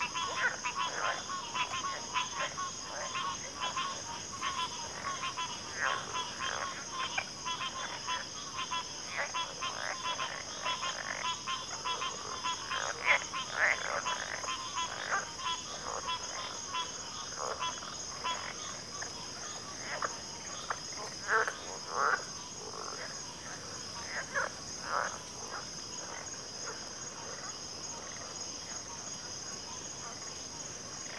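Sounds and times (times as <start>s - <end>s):
chorus of crickets in a backwater: 0.0s - 31.1s.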